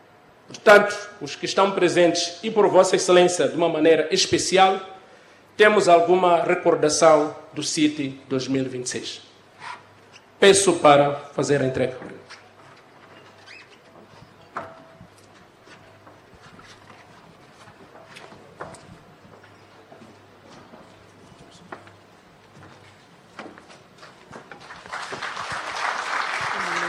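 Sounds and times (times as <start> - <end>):
speech: 0.5 - 5.0, 5.6 - 9.7, 10.4 - 12.3
audience applause: 24.6 - 26.8.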